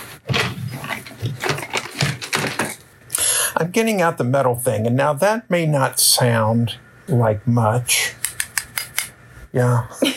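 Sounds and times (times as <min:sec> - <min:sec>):
drawer opening: 0:00.2 - 0:02.9
speech: 0:03.8 - 0:08.0, 0:09.5 - 0:10.1.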